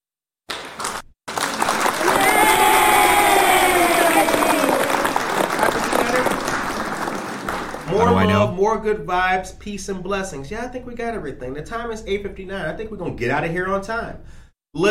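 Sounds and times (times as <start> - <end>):
audience clapping: 0.5 - 8.5
crowd cheering and whooping: 1.6 - 6.2
speech: 8.3 - 14.8.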